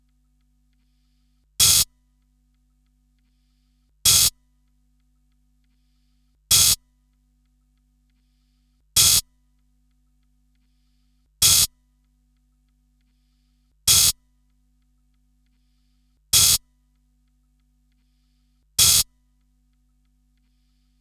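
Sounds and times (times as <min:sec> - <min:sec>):
techno hi-hat: 0:01.6 - 0:01.9, 0:04.1 - 0:04.3, 0:06.5 - 0:06.8, 0:09.0 - 0:09.2, 0:11.4 - 0:11.7, 0:13.9 - 0:14.2, 0:16.4 - 0:16.6, 0:18.8 - 0:19.1.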